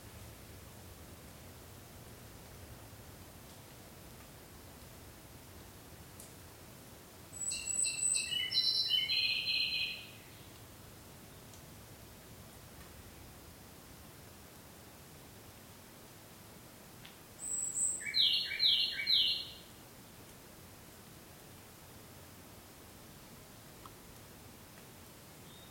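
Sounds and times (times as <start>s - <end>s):
low hiss: 0.0s - 25.6s
Ryukyu robin song: 7.4s - 10.4s, 17.4s - 19.7s, 25.4s - 25.6s.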